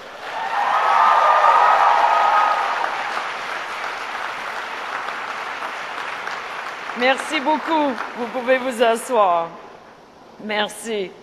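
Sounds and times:
graduates applauding their supporters: 0:00.0 - 0:08.8
speech: 0:07.1 - 0:09.6, 0:10.4 - 0:11.2.

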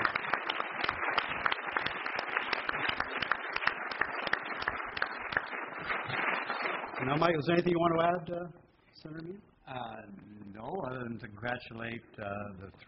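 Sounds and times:
audience applause: 0:00.0 - 0:07.4
speech: 0:07.0 - 0:12.8.

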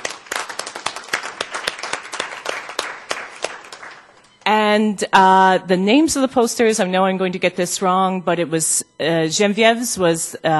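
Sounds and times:
audience applause: 0:00.0 - 0:04.2
speech: 0:04.7 - 0:10.5.

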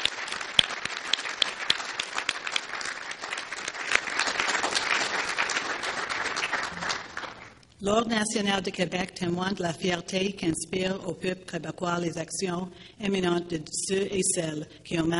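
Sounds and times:
round of applause: 0:00.0 - 0:07.6
speech: 0:07.8 - 0:15.1.

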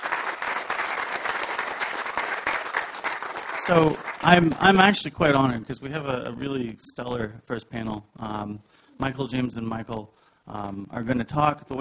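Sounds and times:
audience applause: 0:00.0 - 0:05.0
speech: 0:03.7 - 0:11.7.

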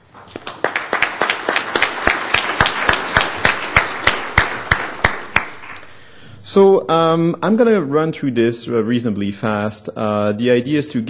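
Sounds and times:
audience round of applause: 0:00.2 - 0:05.9
speech: 0:06.5 - 0:11.0.

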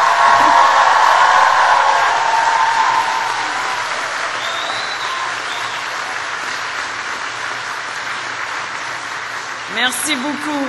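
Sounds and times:
large audience applause: 0:00.0 - 0:10.6
speech: 0:09.8 - 0:10.6.

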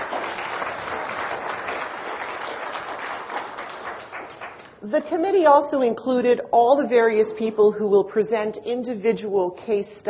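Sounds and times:
audience applause: 0:00.0 - 0:04.7
speech: 0:04.8 - 0:10.0.

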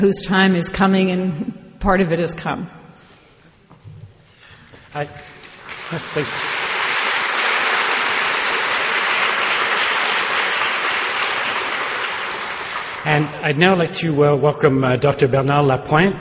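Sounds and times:
speech: 0:00.0 - 0:02.8, 0:04.9 - 0:06.5, 0:13.0 - 0:16.1
audience applause after a lecture: 0:05.4 - 0:13.4.

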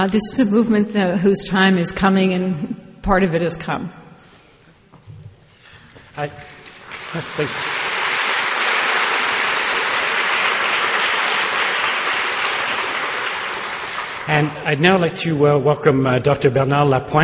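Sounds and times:
speech: 0:00.0 - 0:04.0, 0:06.2 - 0:07.8, 0:14.3 - 0:17.2
audience applause: 0:06.6 - 0:14.6.

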